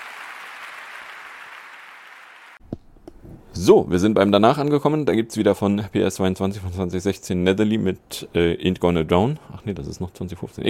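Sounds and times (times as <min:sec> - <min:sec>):
audience applause: 0:00.0 - 0:02.6
speech: 0:03.6 - 0:10.6.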